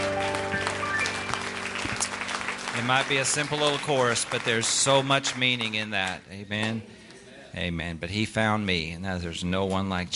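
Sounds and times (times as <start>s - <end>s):
congregation clapping in praise during a worship service: 0.0s - 6.8s
speech: 2.8s - 10.1s.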